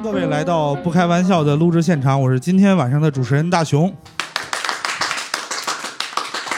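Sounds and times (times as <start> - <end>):
speech: 0.2 - 4.2
crowd applause: 4.1 - 6.5.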